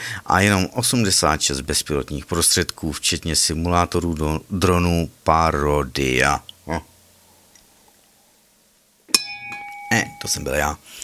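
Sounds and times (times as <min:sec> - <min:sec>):
speech: 0:00.3 - 0:06.9, 0:10.3 - 0:11.0
mug hitting another mug: 0:09.1 - 0:10.4.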